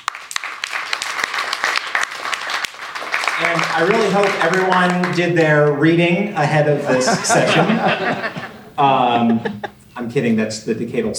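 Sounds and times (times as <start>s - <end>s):
audience applause: 0.0s - 5.8s, 6.8s - 9.7s
speech: 3.4s - 11.1s
laughter: 6.4s - 10.4s.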